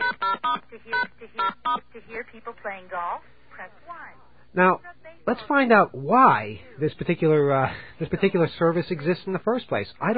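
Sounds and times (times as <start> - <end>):
telephone keypad tones: 0.0 - 1.8
speech: 1.2 - 10.1.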